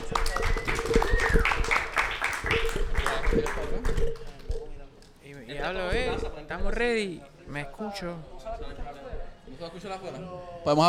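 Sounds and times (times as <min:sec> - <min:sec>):
audience applauding: 0:00.0 - 0:04.6
speech: 0:06.6 - 0:08.4, 0:09.6 - 0:10.8.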